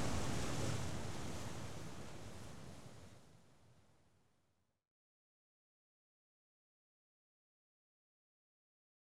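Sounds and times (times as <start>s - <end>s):
sea waves washing heard from a cliff top: 0.0s - 2.9s.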